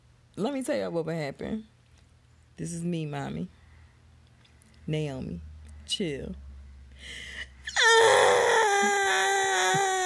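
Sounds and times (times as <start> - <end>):
speech: 0.4 - 1.7, 2.6 - 3.6, 4.9 - 6.4, 7.0 - 9.3
voice imitating baby screaming: 7.7 - 10.0.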